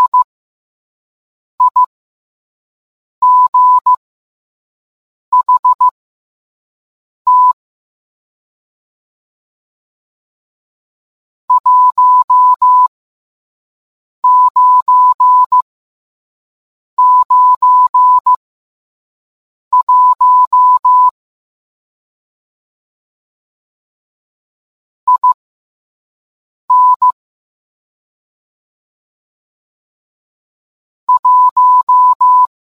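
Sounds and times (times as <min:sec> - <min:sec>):
morse code beeps: 0:00.0 - 0:00.3, 0:01.6 - 0:01.9, 0:03.2 - 0:04.0, 0:05.4 - 0:06.0, 0:07.3 - 0:07.6, 0:11.5 - 0:12.9, 0:14.2 - 0:15.6, 0:17.0 - 0:18.4, 0:19.8 - 0:21.2, 0:25.1 - 0:25.4, 0:26.7 - 0:27.2, 0:31.1 - 0:32.5.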